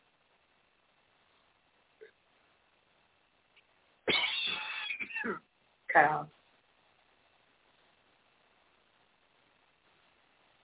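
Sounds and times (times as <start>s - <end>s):
coughing: 4.1s - 5.5s
speech: 6.0s - 6.3s.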